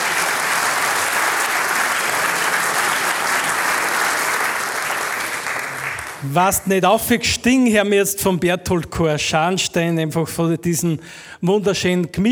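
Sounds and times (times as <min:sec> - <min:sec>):
audience applause: 0:00.0 - 0:06.6
speech: 0:06.2 - 0:12.3.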